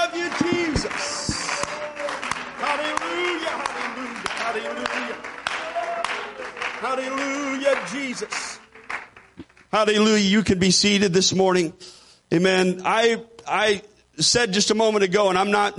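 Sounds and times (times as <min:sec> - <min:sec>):
audience clapping hands: 0:00.0 - 0:09.7
speech: 0:07.9 - 0:08.5, 0:09.7 - 0:15.7.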